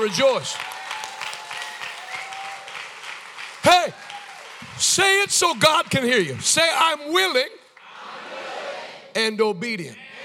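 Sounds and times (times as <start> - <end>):
speech: 0.0 - 0.8, 4.8 - 7.6, 9.2 - 10.0
audience clapping hands: 0.0 - 8.0.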